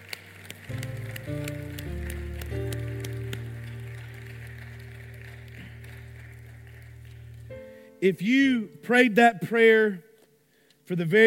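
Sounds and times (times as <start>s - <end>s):
audience applause: 0.0s - 7.8s
speech: 8.0s - 10.1s, 10.9s - 11.2s.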